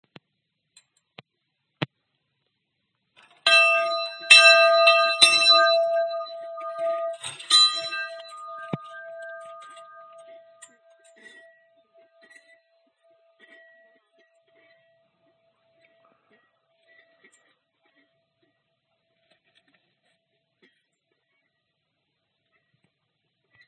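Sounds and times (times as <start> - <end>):
bell: 3.2 - 13.9.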